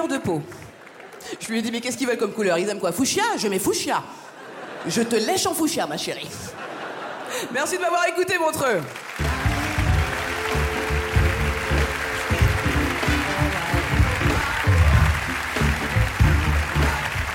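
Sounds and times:
speech: 0.0 - 0.6, 1.2 - 6.8, 7.4 - 9.1
audience applause: 0.5 - 1.4, 8.8 - 17.3
laughter: 4.4 - 5.4, 6.4 - 7.6.

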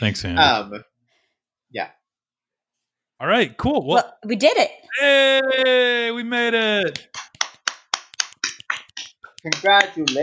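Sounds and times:
speech: 0.0 - 0.9, 1.7 - 2.0, 3.2 - 7.2, 9.4 - 10.2
hand claps: 6.7 - 10.2.

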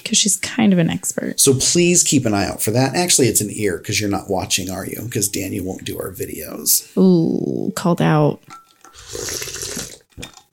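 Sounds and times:
speech: 0.0 - 9.6
person sipping tea: 8.7 - 10.5.

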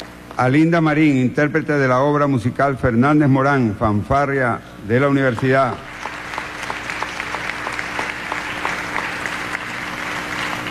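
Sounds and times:
speech: 0.4 - 5.9
audience applause: 5.6 - 10.6.

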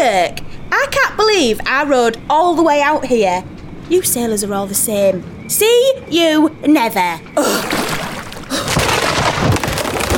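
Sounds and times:
speech: 0.0 - 7.7
storm breaking ship in half: 7.6 - 10.1.

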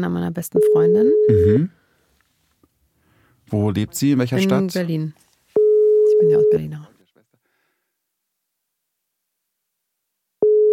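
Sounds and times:
speech: 0.0 - 1.8, 3.5 - 5.2, 6.2 - 6.9
phone line ringing tone: 5.6 - 6.7, 10.4 - 10.7.

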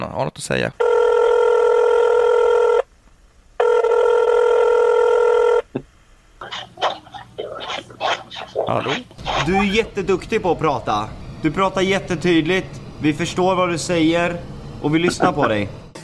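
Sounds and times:
speech: 0.0 - 0.9, 8.7 - 16.0
electronic phone ring tones: 0.8 - 2.9, 3.6 - 5.7.

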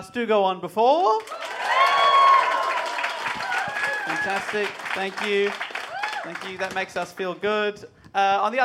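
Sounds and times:
speech: 0.0 - 1.8, 4.1 - 8.6
audience applause at a live show: 1.2 - 7.1.

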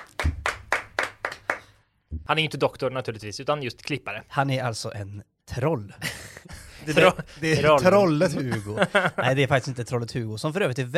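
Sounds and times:
hand clapping: 0.0 - 1.8
speech: 2.3 - 10.9
laughter: 6.0 - 9.8.

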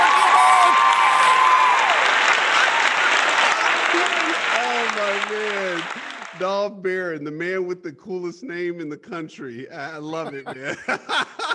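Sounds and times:
audience applause welcoming a guest: 0.0 - 6.6
laughter: 3.4 - 6.4, 9.7 - 11.5
speech: 5.8 - 11.5.

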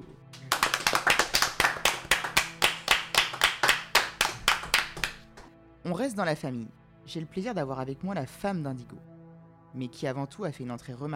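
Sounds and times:
audience applause: 0.4 - 5.3
speech: 5.9 - 9.1, 9.7 - 11.1.

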